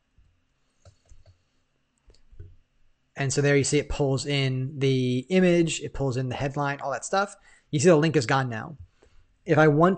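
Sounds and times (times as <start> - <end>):
low hum: 0.0 - 9.9
computer mouse clicks while clicking through a web page: 0.8 - 1.4
speech: 3.2 - 9.9.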